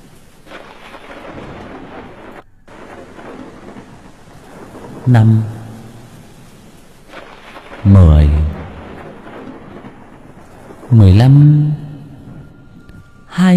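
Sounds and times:
thunder: 0.0 - 13.3
heavy rain: 0.0 - 13.5
speech: 5.0 - 5.6, 7.8 - 8.4, 11.0 - 11.8.

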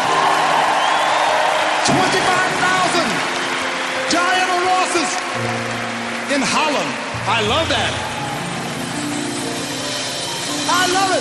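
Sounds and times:
audience cheering and applause with whoops: 0.0 - 11.2
speech: 1.9 - 2.5, 7.3 - 8.1, 10.8 - 11.2.

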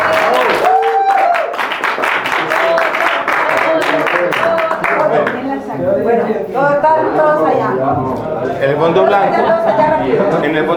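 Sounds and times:
audience applause at a narrative-song workshop: 0.0 - 5.6
speech: 6.9 - 10.7.

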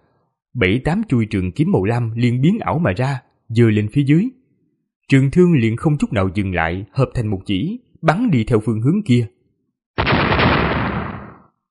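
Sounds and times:
speech: 0.6 - 4.4, 5.1 - 9.4
crisp explosive bursts: 10.0 - 11.5.

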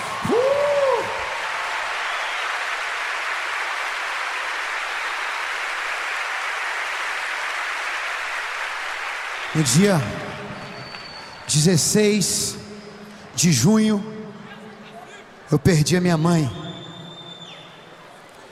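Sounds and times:
audience applause: 0.0 - 11.6
speech: 9.6 - 10.2, 11.5 - 12.6, 13.4 - 14.1, 15.5 - 16.6.

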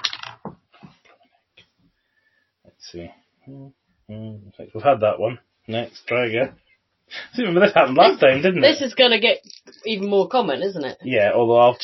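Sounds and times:
dice rolled, clattering and rattling: 0.0 - 0.6, 9.4 - 10.1
speech: 2.8 - 11.8.

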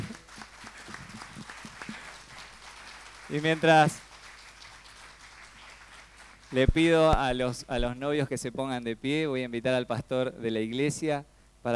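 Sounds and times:
audience applause: 0.0 - 7.4
speech: 3.3 - 4.1, 6.5 - 11.7.

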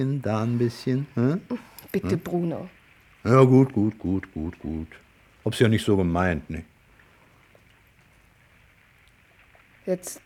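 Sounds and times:
speech: 0.0 - 6.7, 9.8 - 10.2
rain falling: 0.0 - 10.2.

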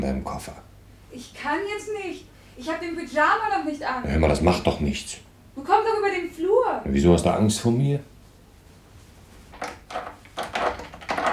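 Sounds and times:
speech: 0.0 - 8.1
stuck wooden door with a rusty lock rattling and scraping as it is tugged: 9.6 - 11.3.

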